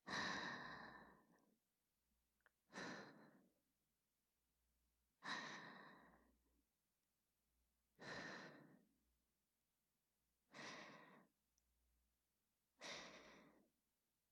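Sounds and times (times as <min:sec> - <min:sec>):
whispered breathing: 0:00.0 - 0:01.6, 0:02.7 - 0:03.6, 0:05.2 - 0:06.4, 0:08.0 - 0:09.0, 0:10.5 - 0:11.4, 0:12.8 - 0:13.8.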